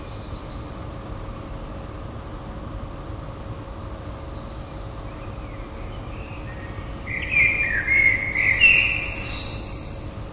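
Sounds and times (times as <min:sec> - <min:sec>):
common blackbird song: 0:00.0 - 0:01.0, 0:04.2 - 0:10.3.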